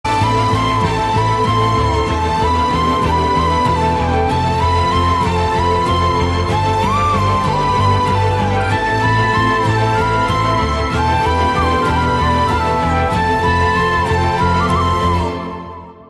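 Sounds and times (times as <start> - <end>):
love background music: 0.1 - 16.0.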